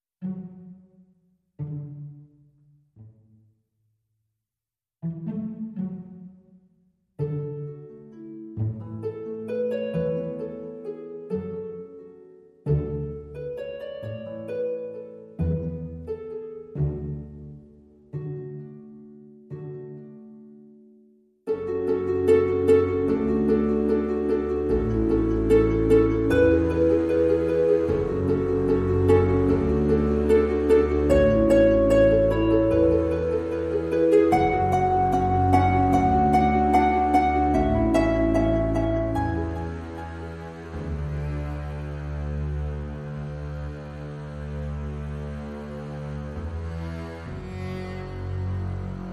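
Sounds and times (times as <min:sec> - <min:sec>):
orchestral music bed: 0:00.2 - 0:03.3, 0:05.0 - 0:20.1, 0:21.5 - 0:49.1.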